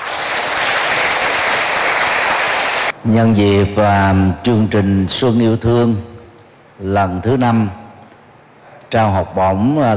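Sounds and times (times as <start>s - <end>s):
applause at a spring scholarship celebration at a pagoda: 0.0s - 2.9s
speech: 3.0s - 6.1s, 6.8s - 7.8s, 8.9s - 9.9s.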